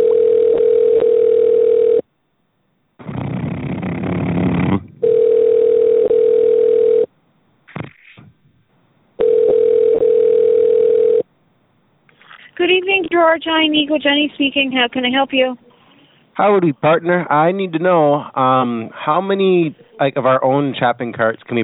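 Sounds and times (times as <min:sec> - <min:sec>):
rough noisy phone line static: 0:00.0 - 0:02.1, 0:03.0 - 0:07.1, 0:09.2 - 0:11.3
steady mid-pitched telephone tone during call transfer: 0:00.0 - 0:02.1, 0:05.0 - 0:07.1, 0:09.2 - 0:11.3
speech: 0:13.3 - 0:15.6, 0:16.4 - 0:21.6.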